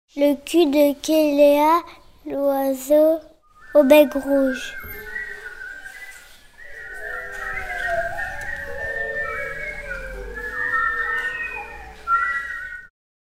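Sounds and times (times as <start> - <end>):
quelea birds calling: 1.2 - 12.9.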